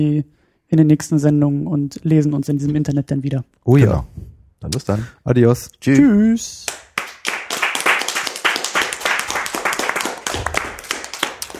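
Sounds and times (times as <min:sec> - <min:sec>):
speech: 0:00.0 - 0:06.8
applause: 0:06.7 - 0:11.5.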